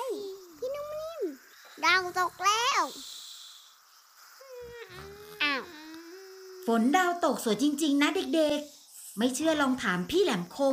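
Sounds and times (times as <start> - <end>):
speech: 1.9 - 3.2, 6.7 - 10.7
cartoonish snore: 4.6 - 6.6.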